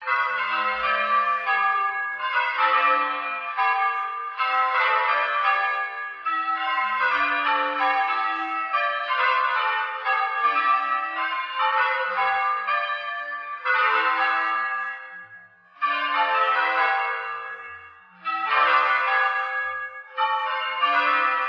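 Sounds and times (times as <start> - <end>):
bells ringing: 0.0 - 21.4.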